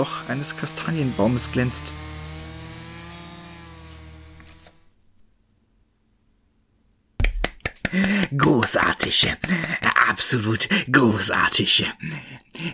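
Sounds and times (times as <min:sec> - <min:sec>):
speech: 0:00.0 - 0:02.1, 0:07.9 - 0:12.7
chainsaw running: 0:00.0 - 0:05.0.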